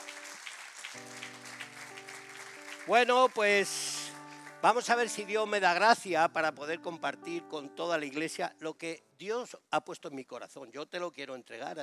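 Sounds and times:
sustained keyboard chords: 0:00.0 - 0:00.4, 0:01.0 - 0:08.7
crowd applause: 0:00.0 - 0:05.3
speech: 0:02.9 - 0:03.9, 0:04.6 - 0:11.8.

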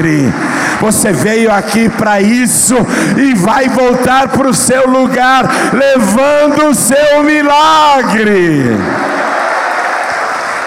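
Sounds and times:
speech: 0:00.0 - 0:09.1
audience applauding: 0:08.6 - 0:10.6.

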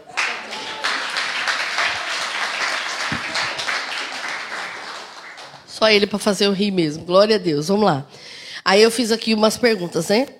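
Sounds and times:
audience applauding: 0:00.0 - 0:05.7
speech: 0:05.8 - 0:10.3.

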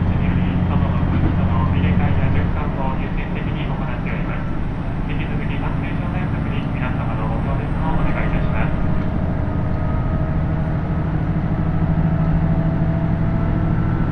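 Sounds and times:
voices chattering: 0:00.0 - 0:09.4
KiHa 75 diesel railcar engine rumbling on the Takayama Line: 0:00.0 - 0:14.1.

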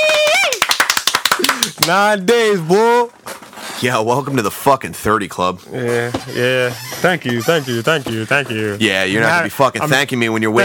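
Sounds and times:
high rising-and-falling cheer: 0:00.0 - 0:02.0
audience clapping: 0:00.0 - 0:02.3
speech: 0:01.8 - 0:03.2, 0:03.8 - 0:10.6.

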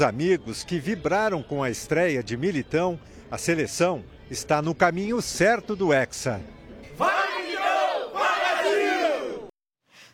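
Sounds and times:
speech: 0:00.0 - 0:07.2
loud crowd of football fans roaring and chanting: 0:06.9 - 0:09.5.

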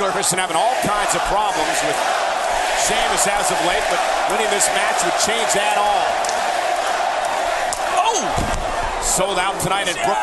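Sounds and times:
vocal arena crowd cheering at a wrestling match: 0:00.0 - 0:10.2
speech: 0:00.1 - 0:06.5, 0:09.1 - 0:10.2.

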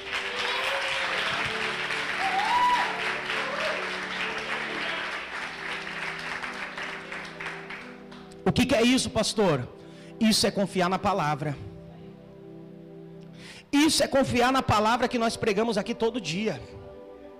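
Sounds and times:
audience applause: 0:00.0 - 0:08.4
speech: 0:08.6 - 0:11.7, 0:13.9 - 0:16.8.

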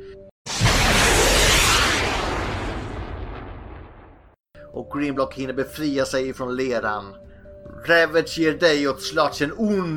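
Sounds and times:
missile fire and explosion sound effect: 0:00.5 - 0:04.4
speech: 0:04.7 - 0:09.9.

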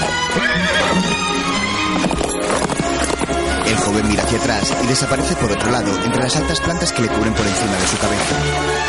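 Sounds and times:
horse neighing: 0:00.0 - 0:05.2
horse galloping: 0:00.0 - 0:06.5
speech: 0:03.9 - 0:08.8.

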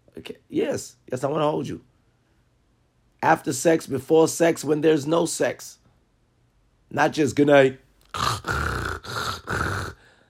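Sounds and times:
speech: 0:00.2 - 0:01.9, 0:03.2 - 0:05.8, 0:06.9 - 0:08.4
person imitating snoring: 0:08.1 - 0:10.1.

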